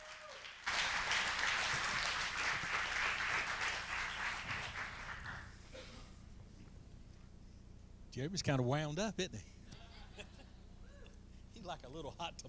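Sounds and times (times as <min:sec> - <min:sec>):
audience applause: 0:00.0 - 0:05.6
speech: 0:08.2 - 0:09.6, 0:11.7 - 0:12.4
laughter: 0:09.7 - 0:11.2.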